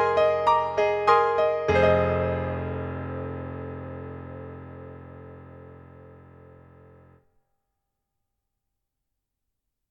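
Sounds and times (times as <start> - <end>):
Kurzweil MicroPiano MP-1 stage piano in 440 ensemble tuning: 0.0 - 7.1.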